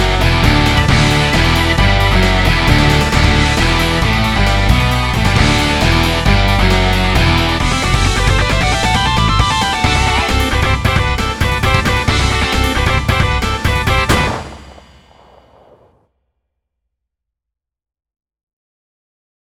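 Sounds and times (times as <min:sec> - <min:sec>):
MIDI music: 0:00.0 - 0:14.8.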